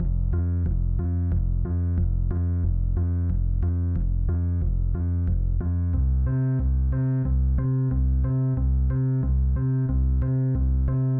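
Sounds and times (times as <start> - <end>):
bass: 0.0 - 11.1.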